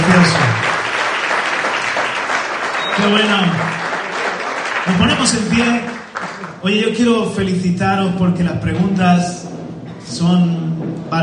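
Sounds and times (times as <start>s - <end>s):
audience applause: 0.0s - 6.7s
speech: 3.0s - 3.6s, 5.2s - 5.9s, 6.6s - 11.2s.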